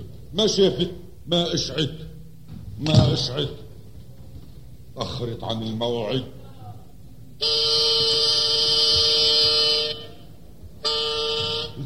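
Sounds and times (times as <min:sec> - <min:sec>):
speech: 0:00.3 - 0:02.1, 0:02.8 - 0:03.6, 0:05.0 - 0:06.4
car horn honking: 0:07.4 - 0:11.8.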